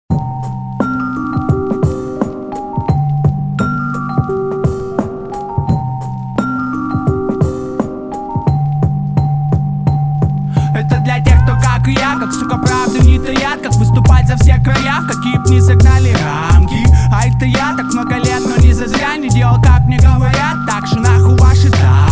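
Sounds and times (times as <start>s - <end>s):
hip hop music: 0.1s - 22.1s.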